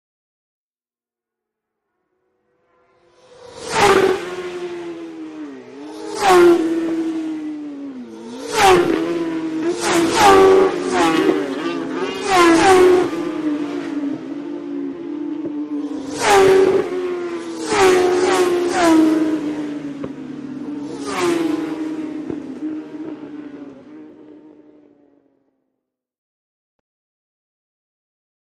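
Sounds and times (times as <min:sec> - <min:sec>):
motorcycles road racing: 0:02.4 - 0:25.2.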